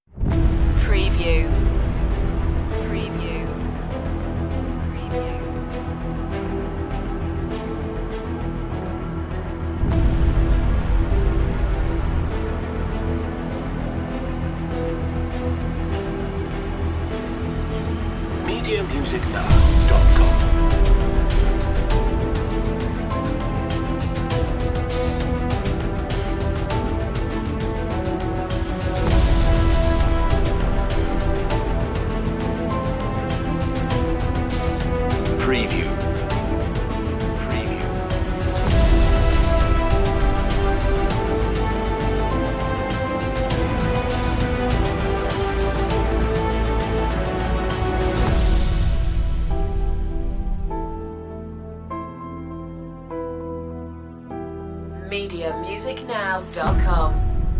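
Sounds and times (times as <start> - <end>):
dramatic building music: 0.1 - 55.0, 56.5 - 57.5.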